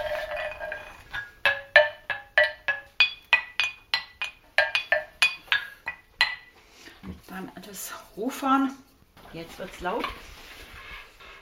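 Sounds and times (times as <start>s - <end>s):
small bones clinking as percussion: 0.0s - 6.5s
speech: 7.4s - 10.4s.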